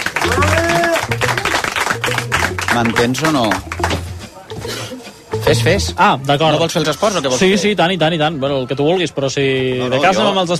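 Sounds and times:
studio audience applause: 0.0 - 4.0
voices calling out and talking: 0.0 - 7.8
speech: 2.8 - 4.0, 5.4 - 10.5.

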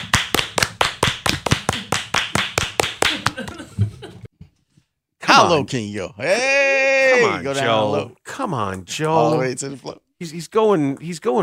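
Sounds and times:
hand clapping: 0.0 - 3.6
speech: 5.4 - 11.4.

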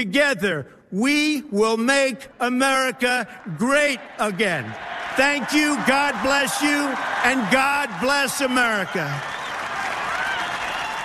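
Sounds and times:
speech: 0.0 - 9.4
rally crowd shouting along: 4.0 - 11.0.

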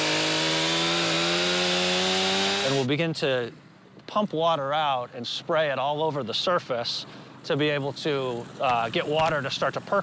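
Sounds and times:
chainsaw cutting an ice fishing hole: 0.0 - 2.9
speech: 2.8 - 10.0.

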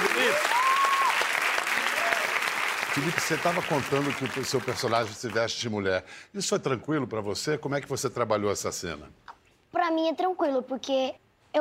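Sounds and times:
warm audience applause: 0.0 - 5.6
speech: 3.0 - 11.5.

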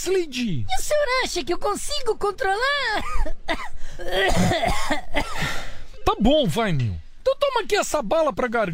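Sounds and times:
speech: 0.0 - 8.7
coughing: 3.0 - 5.7.

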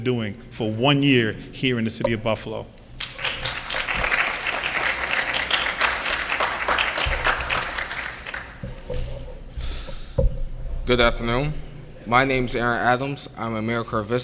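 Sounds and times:
speech: 0.0 - 2.8, 10.9 - 14.2
audience applause: 3.0 - 8.9.

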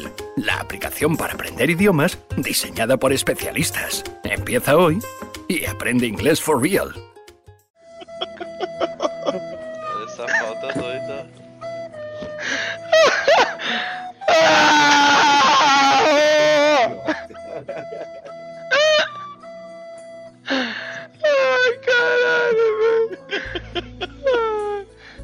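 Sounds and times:
speech: 0.4 - 7.1
Neymar Jr. crying after losing at online poker: 7.9 - 10.8, 12.6 - 19.3, 21.1 - 24.9
Neymar Jr. laughing: 7.9 - 10.8, 15.0 - 18.4, 23.0 - 24.8.

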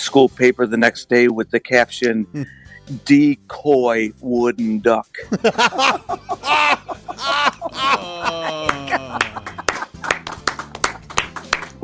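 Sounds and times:
speech: 0.0 - 9.6
laughter: 5.2 - 10.4
applause at a standing ovation: 8.3 - 11.8.

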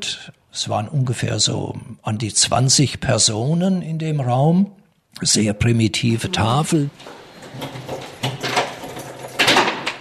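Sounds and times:
speech: 0.0 - 8.1
classroom door lock and handle clicks and rattles: 7.4 - 9.9.

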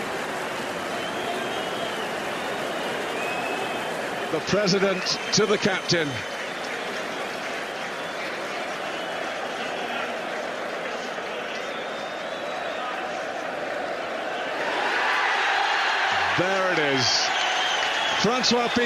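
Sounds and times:
stadium crowd cheering: 0.0 - 18.8
speech: 4.3 - 6.3, 18.2 - 18.8.

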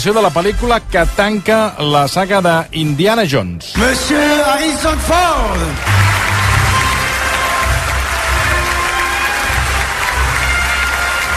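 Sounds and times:
speech: 0.0 - 6.3
audience cheering: 3.8 - 11.3
audience applause: 4.8 - 11.3.

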